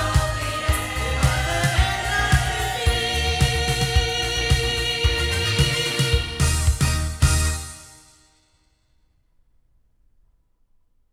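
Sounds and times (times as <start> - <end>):
loudspeakers: 0.0 - 7.7.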